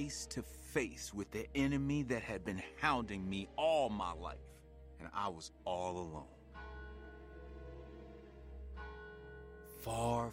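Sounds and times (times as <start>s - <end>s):
speech: 0.0s - 6.4s, 9.8s - 10.3s
distant church bells ringing: 0.0s - 10.3s.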